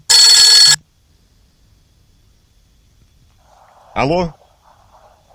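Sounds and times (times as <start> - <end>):
telephone ringing: 0.1 - 0.8
speech: 4.0 - 4.4.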